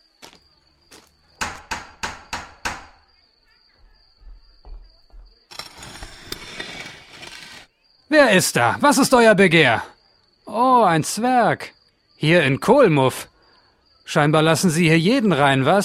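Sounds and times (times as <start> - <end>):
door knocker knocking: 1.4 - 3.1
speech: 8.1 - 9.9, 10.5 - 13.3, 14.1 - 15.8.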